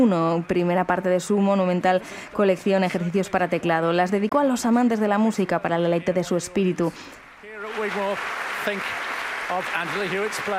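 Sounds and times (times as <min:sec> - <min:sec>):
speech: 0:00.0 - 0:10.5
concert audience applauding in the Wigmore Hall: 0:07.3 - 0:10.5.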